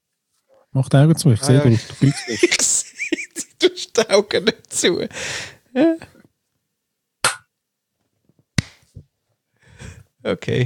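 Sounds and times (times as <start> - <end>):
speech: 0.7 - 2.8, 3.6 - 6.1, 10.2 - 10.6
laughter: 1.4 - 4.7
hand clapping: 8.6 - 8.9.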